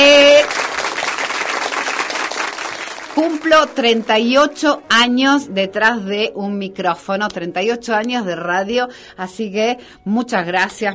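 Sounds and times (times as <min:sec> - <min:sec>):
recorded applause played as effect: 0:00.0 - 0:04.8
speech: 0:03.2 - 0:10.9.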